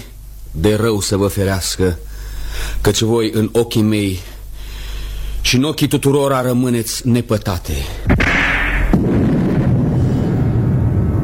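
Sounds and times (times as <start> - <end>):
speech: 0.6 - 4.3, 5.5 - 8.2
thunder: 8.1 - 11.2.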